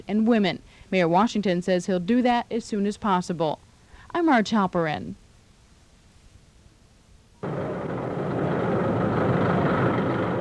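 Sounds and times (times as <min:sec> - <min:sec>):
speech: 0:00.1 - 0:05.2
bulldozer engine roaring at a construction groundbreaking: 0:07.4 - 0:10.3.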